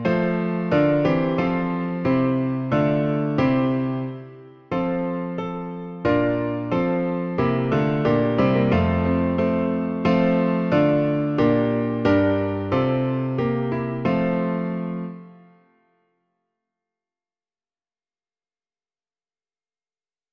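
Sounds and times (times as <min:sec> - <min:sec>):
hymn played on piano: 0:00.0 - 0:15.9.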